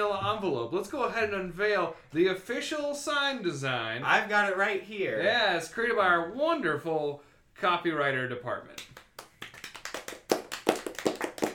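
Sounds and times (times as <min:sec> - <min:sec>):
speech: 0:00.0 - 0:09.0
recorded rhythmic hand clapping: 0:08.7 - 0:11.5.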